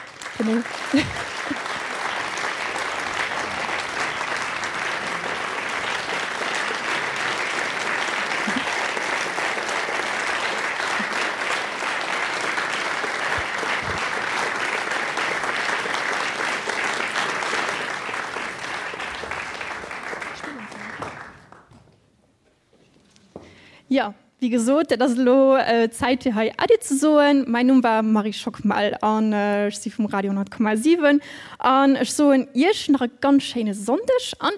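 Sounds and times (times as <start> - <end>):
crowd applause at a German-language radio event: 0.0 - 21.8
speech: 0.4 - 1.6, 24.4 - 34.5
laughter: 0.4 - 2.4, 3.1 - 11.8.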